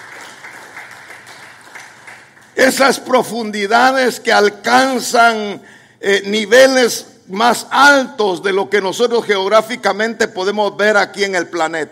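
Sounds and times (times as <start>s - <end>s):
church congregation applauding during a service: 0.0s - 3.2s
speech: 2.6s - 11.9s.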